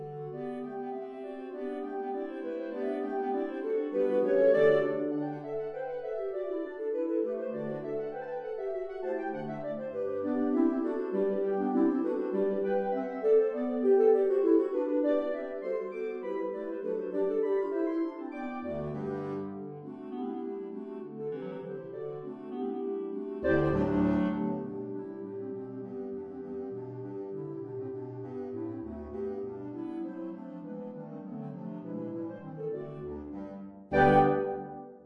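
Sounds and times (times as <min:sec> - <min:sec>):
clarinet ensemble playing: 0:00.0 - 0:35.0.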